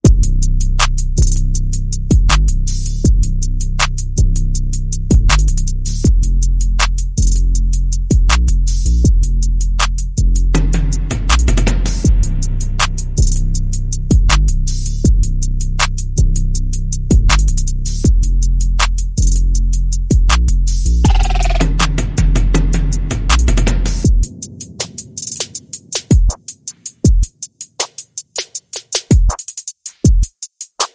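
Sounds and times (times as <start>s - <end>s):
bass: 0.0s - 24.3s
percussion: 0.0s - 30.9s.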